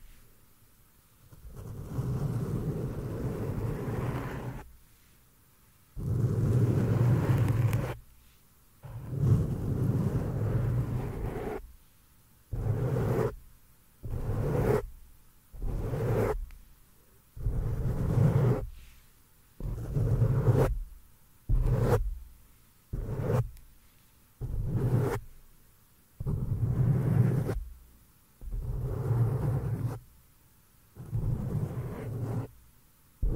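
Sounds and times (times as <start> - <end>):
hands brushing and rubbing against the microphone: 1.3 - 4.7, 6.0 - 8.0, 8.9 - 11.7, 12.5 - 13.4, 14.1 - 14.9, 15.5 - 16.6, 17.4 - 20.9, 21.5 - 22.3, 22.9 - 23.7, 24.4 - 25.4, 26.2 - 27.7, 28.4 - 30.0, 31.0 - 32.5.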